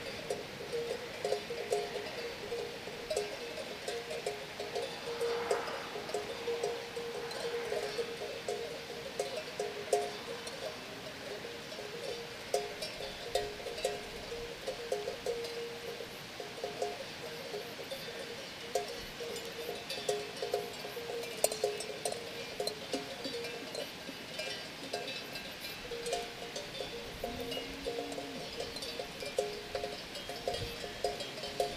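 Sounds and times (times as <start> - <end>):
cow bells on the Camino de Santiago in Spain: 0.0 - 31.7.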